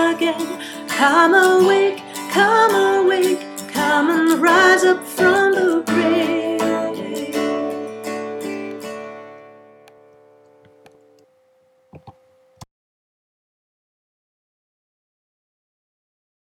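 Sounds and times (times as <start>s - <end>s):
soprano singing an Easter hymn: 0.0s - 8.9s.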